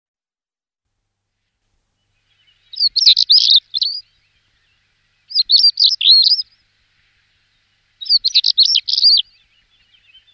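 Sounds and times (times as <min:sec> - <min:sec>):
stonechat singing squeaky warbled phrases: 0:02.8 - 0:04.0, 0:05.3 - 0:06.4, 0:08.0 - 0:09.2.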